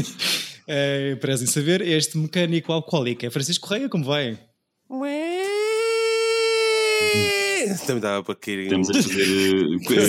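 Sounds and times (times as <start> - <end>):
speech: 0.0 - 5.2, 7.1 - 10.0
voice imitating a DJ siren: 4.9 - 7.8
laughter: 8.7 - 10.0.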